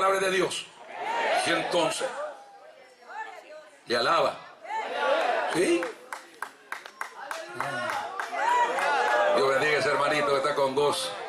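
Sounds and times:
speech: 0.0s - 0.8s, 1.4s - 2.2s, 3.9s - 4.4s, 5.5s - 6.0s, 10.6s - 11.2s
applause in church: 5.2s - 9.9s.

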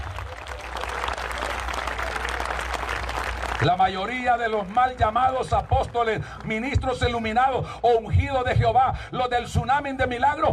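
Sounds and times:
audience applauding: 0.0s - 6.6s
speech: 3.6s - 10.5s.

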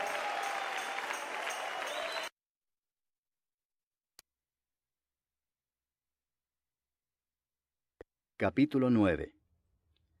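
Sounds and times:
audience applauding loudly: 0.0s - 2.3s
speech: 8.4s - 9.4s.

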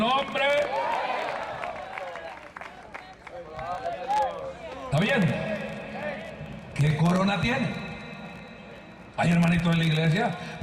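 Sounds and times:
audience applauding: 0.4s - 4.9s
speech: 4.9s - 5.5s, 6.8s - 7.8s, 9.2s - 10.6s.

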